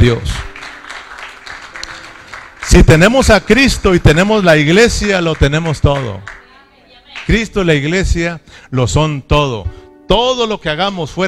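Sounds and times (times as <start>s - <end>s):
speech: 0.0s - 0.4s, 2.8s - 6.3s, 7.2s - 11.2s
audience applause: 0.4s - 6.4s.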